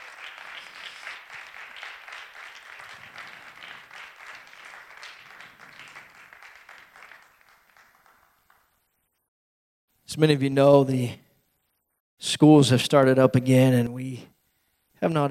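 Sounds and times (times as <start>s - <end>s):
large audience giving a standing ovation: 0.0s - 8.9s
speech: 10.2s - 11.2s, 12.4s - 14.3s, 15.0s - 15.3s.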